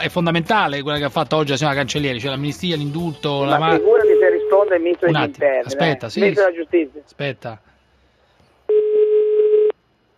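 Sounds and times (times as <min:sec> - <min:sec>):
speech: 0:00.0 - 0:04.0, 0:04.6 - 0:07.7
electronic telephone tone as a call is dialed: 0:03.7 - 0:05.2, 0:08.7 - 0:09.8.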